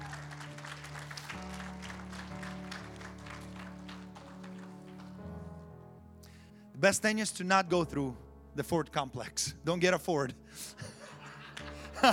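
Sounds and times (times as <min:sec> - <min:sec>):
audience clapping: 0:00.0 - 0:05.5, 0:11.1 - 0:12.1
sustained low musical tones: 0:00.0 - 0:12.1
speech: 0:06.8 - 0:11.0
laughter: 0:10.6 - 0:12.1.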